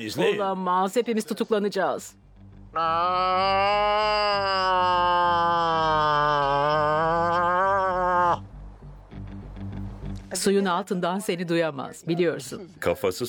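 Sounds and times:
speech: 0:00.0 - 0:02.2, 0:02.8 - 0:07.4, 0:10.4 - 0:13.2
person imitating a moose call: 0:02.7 - 0:08.5.

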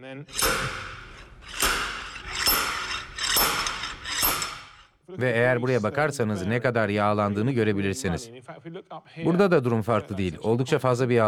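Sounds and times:
speech: 0:00.0 - 0:01.6, 0:05.1 - 0:11.2
rod fitted to a shaft flange being pulled: 0:00.3 - 0:04.8.

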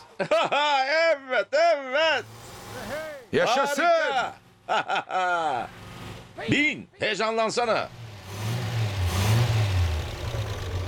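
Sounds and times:
laughter: 0:00.0 - 0:02.2, 0:03.4 - 0:05.8
speech: 0:00.2 - 0:05.8, 0:06.4 - 0:08.0
car engine running: 0:02.2 - 0:04.8, 0:05.5 - 0:06.7, 0:07.6 - 0:10.8.

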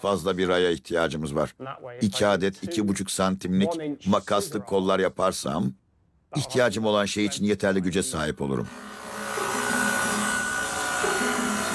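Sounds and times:
speech: 0:00.0 - 0:09.0
lumber being sawn: 0:08.7 - 0:11.7.

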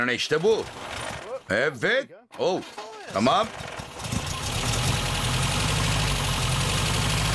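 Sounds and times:
speech: 0:00.0 - 0:03.7
four-cylinder car engine idling roughly on three cylinders: 0:03.2 - 0:07.3.

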